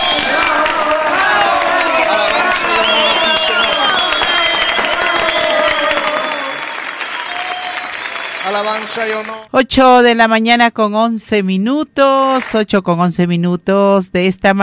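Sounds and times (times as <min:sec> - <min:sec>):
crowd applauding: 0:00.0 - 0:09.5
speech: 0:08.5 - 0:14.6.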